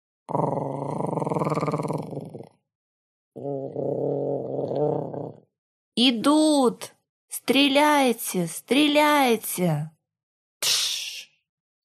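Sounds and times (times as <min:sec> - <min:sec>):
speech: 0:00.3 - 0:00.8, 0:06.0 - 0:09.9
voice imitating a wet guttural throat growl: 0:00.3 - 0:02.6, 0:03.4 - 0:05.5.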